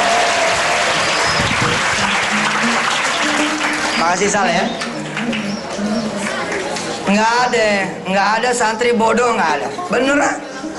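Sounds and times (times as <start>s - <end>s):
audience applause at a religious talk: 0.0s - 7.1s
faint crowd murmur: 0.0s - 8.1s, 9.4s - 10.7s
speech: 4.0s - 5.5s, 7.1s - 10.5s.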